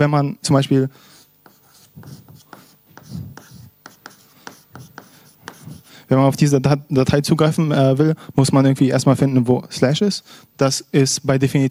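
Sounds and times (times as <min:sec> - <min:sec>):
speech: 0:00.0 - 0:01.1, 0:06.1 - 0:11.6
pen or marker scratching while drawing a diagram by hand: 0:01.1 - 0:05.9.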